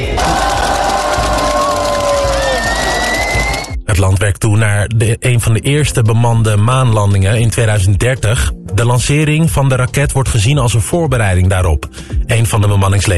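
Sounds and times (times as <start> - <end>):
large crowd cheering and whooping: 0.1 - 3.8
speech: 4.2 - 13.1.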